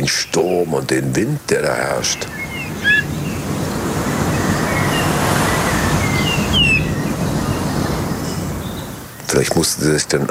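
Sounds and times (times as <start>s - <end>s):
speech: 0.1s - 3.1s, 9.3s - 10.2s
unusual bullfinch call: 1.4s - 9.6s.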